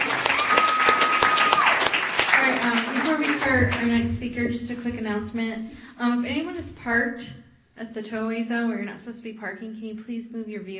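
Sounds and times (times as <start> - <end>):
crowd applauding: 0.0 - 4.0
speech: 3.6 - 10.7.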